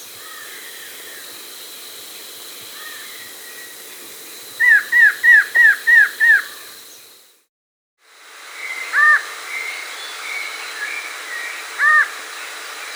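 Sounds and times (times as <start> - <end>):
variable antshrike Thamnophilus caerulescens nasal calls in the Andes: 0.0 - 7.2.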